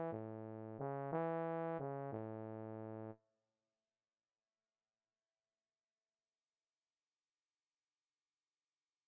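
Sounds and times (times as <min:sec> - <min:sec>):
bass: 0:00.0 - 0:03.2.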